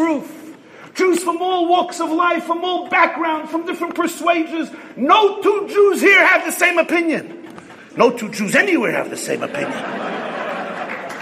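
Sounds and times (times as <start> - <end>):
speech: 0.2 - 0.4, 1.0 - 10.3
laughter: 9.0 - 11.2
audience clapping: 10.3 - 11.2.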